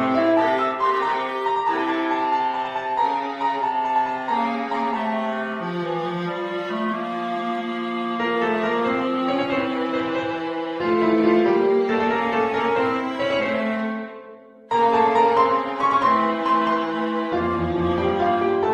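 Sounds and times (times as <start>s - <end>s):
clarinet: 0.0s - 18.7s
viola: 0.0s - 18.7s.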